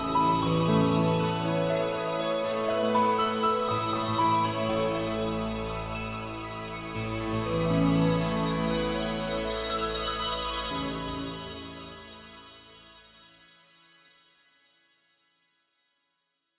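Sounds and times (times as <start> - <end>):
music track at 120 bpm: 0.0 - 13.0.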